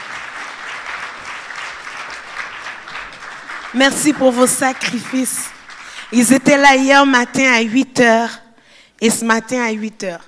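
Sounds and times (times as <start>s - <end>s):
audience applause: 0.0s - 6.1s
speech: 3.7s - 8.4s, 9.0s - 10.2s.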